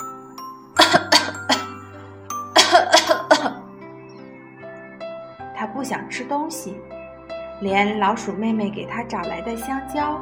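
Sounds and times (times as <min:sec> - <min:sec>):
coughing: 0:00.8 - 0:01.9, 0:02.6 - 0:03.7
speech: 0:02.7 - 0:03.2, 0:05.8 - 0:07.0, 0:07.6 - 0:10.2.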